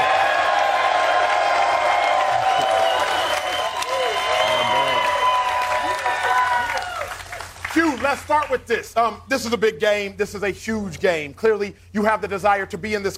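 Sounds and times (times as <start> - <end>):
crowd applause and cheering: 0.0 - 8.6
speech: 8.1 - 13.1.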